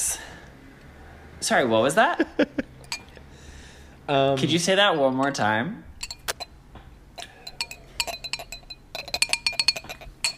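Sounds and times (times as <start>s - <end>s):
speech: 1.4s - 2.7s, 4.1s - 5.9s
tapping Morse code on a drinking glass: 7.2s - 10.3s.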